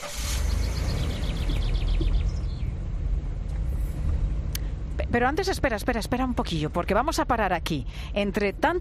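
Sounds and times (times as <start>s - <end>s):
car engine rumbling while driving: 0.0s - 8.7s
high chirping bird calls: 0.3s - 2.9s
speech: 5.2s - 8.7s.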